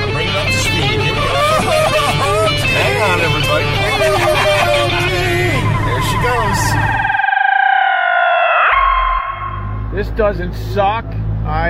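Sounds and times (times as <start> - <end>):
laughter: 0.4 - 6.3
time machine sound effect: 5.4 - 9.8
speech: 10.2 - 11.6.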